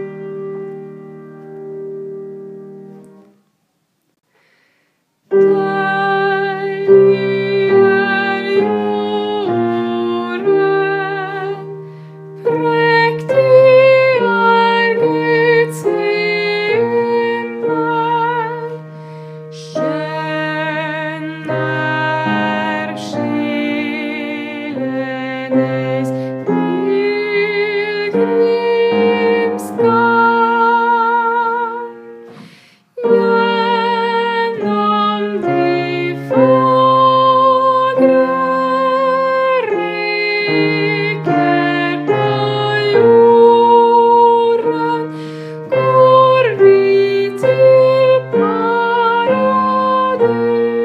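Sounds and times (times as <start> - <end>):
tenor singing: 5.3 - 50.8.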